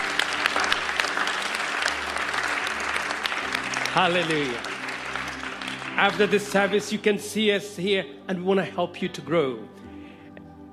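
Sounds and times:
audience applauding: 0:00.0 - 0:07.2
speech: 0:04.0 - 0:04.7, 0:06.0 - 0:09.8.

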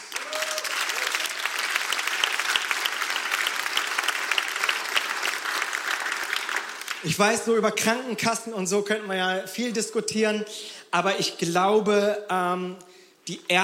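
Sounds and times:
crowd applauding: 0:00.0 - 0:07.2
speech: 0:07.0 - 0:13.6.

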